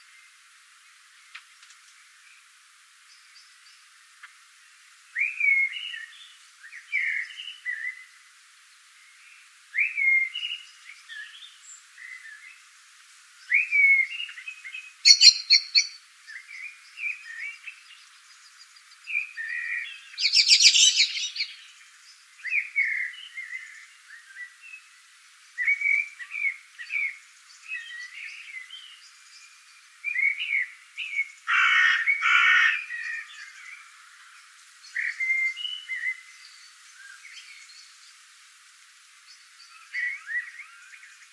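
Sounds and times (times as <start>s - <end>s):
common blackbird singing: 5.2s - 8.1s, 9.1s - 12.6s, 13.4s - 21.8s, 22.4s - 24.9s, 25.5s - 38.0s, 39.6s - 41.3s.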